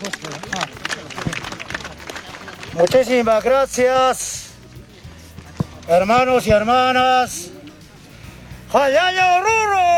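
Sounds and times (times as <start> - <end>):
crowd applause: 0.0 - 3.2
speech: 2.8 - 4.4, 5.9 - 7.5, 8.7 - 9.9.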